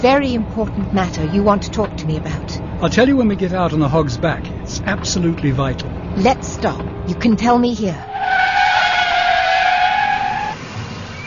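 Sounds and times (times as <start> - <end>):
speech: 0.0 - 8.4
low car engine rumble: 0.0 - 11.2
car tyres squealing as the car swerves on the road: 4.0 - 11.2.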